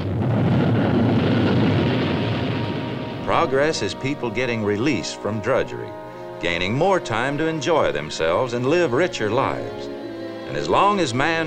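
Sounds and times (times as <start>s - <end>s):
rocket roaring: 0.0s - 5.3s
speech: 3.4s - 11.4s.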